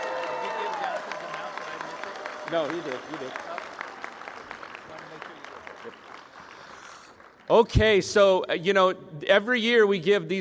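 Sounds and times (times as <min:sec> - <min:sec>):
audience applause for award winners at an annual awards event: 0:00.0 - 0:07.7
crowd noise: 0:00.0 - 0:08.0
speech: 0:02.5 - 0:03.7, 0:07.5 - 0:10.3.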